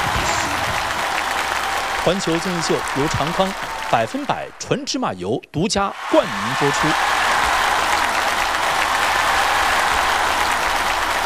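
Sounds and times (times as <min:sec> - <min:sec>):
audience applause: 0:00.0 - 0:04.9, 0:06.0 - 0:11.2
speech: 0:02.0 - 0:07.2.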